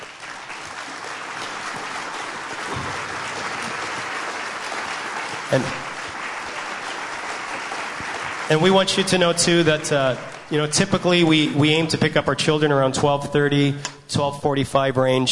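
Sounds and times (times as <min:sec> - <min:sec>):
standing congregation applauding a guest: 0:00.0 - 0:11.9
speech: 0:05.5 - 0:05.8, 0:08.5 - 0:15.3.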